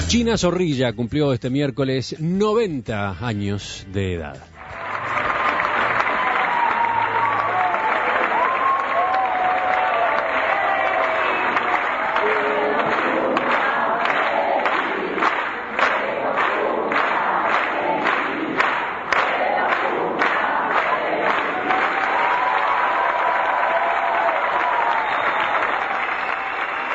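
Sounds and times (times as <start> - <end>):
speech: 0.1 - 4.5
rhythmic clapping: 2.9 - 26.9
large theater audience applause: 4.6 - 26.9
theater audience cheering: 4.6 - 26.9.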